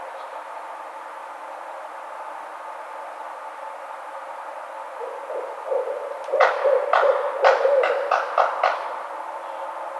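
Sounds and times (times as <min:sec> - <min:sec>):
barred owl hooting and whooping: 0:04.6 - 0:09.9.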